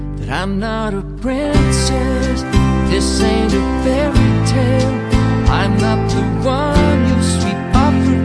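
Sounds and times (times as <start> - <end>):
studio version karaoke backing track: 0.1 - 8.2.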